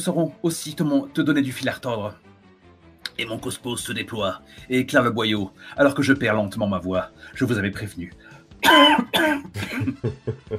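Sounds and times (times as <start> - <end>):
speech: 0.0 - 2.3, 3.2 - 10.5
person coughing: 8.6 - 10.2
laughter: 9.5 - 10.5.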